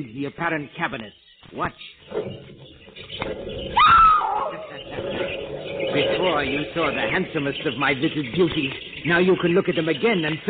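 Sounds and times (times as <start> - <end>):
speech: 0.0 - 2.6, 6.0 - 10.4
caged animals squealing: 2.1 - 8.1.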